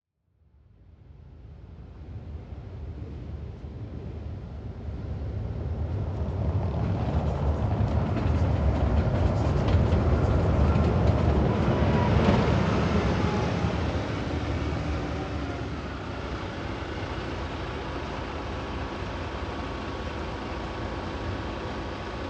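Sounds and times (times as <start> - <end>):
bus arriving and departing: 1.2 - 22.2.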